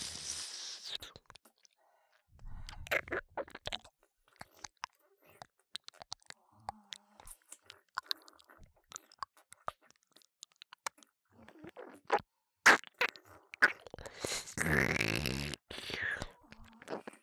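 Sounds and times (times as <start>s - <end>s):
sucking sounds: 0.0s - 1.1s, 14.0s - 17.1s
ear licking: 2.7s - 11.0s, 11.6s - 17.2s.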